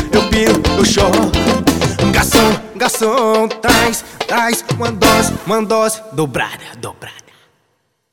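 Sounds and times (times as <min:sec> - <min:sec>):
forró music: 0:00.0 - 0:06.0.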